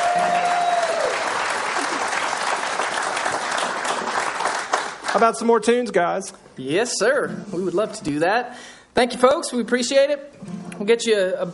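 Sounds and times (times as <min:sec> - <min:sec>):
crowd applause: 0:00.0 - 0:05.5
speech: 0:05.2 - 0:11.5.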